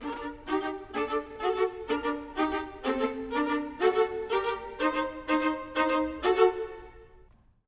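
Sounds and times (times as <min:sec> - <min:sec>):
orchestral violas: 0:00.0 - 0:07.3.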